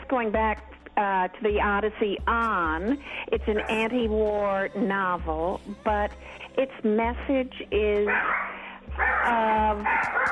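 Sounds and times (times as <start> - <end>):
speech: 0.1 - 8.5, 9.2 - 10.2
dog whining barks: 8.1 - 10.2.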